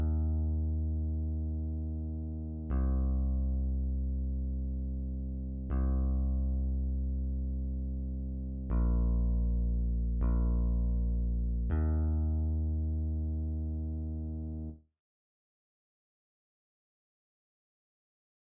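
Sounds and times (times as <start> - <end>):
bass guitar: 0.0 - 14.8.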